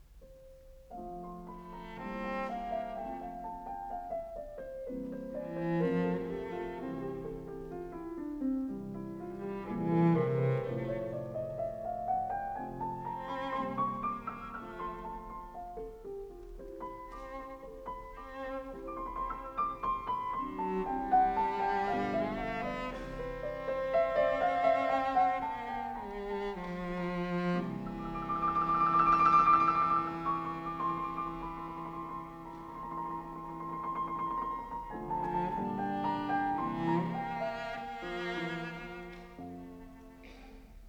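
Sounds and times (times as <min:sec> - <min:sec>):
cello piece in F major: 0:00.0 - 0:40.8.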